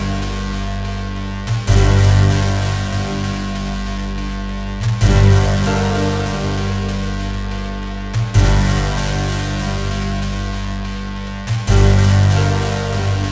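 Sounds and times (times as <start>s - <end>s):
boss music loop: 0.0s - 13.3s.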